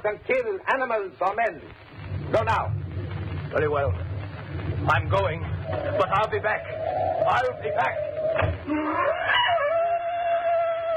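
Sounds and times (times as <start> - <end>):
speech: 0.0 - 2.8, 3.5 - 9.4
black panthers screaming: 5.6 - 10.9.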